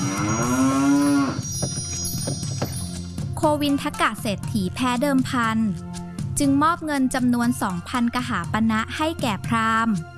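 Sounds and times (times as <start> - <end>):
ox lowing while pulling a hundred carts: 0.0 - 1.5
knocks and rattles: 1.4 - 2.8
speech: 3.4 - 10.1.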